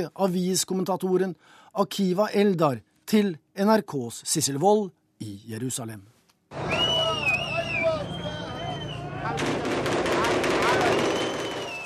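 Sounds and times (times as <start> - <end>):
speech: 0.0 - 6.8
loud crowd shouting: 6.6 - 11.8
rifle volleys fired at a funeral: 9.4 - 11.7.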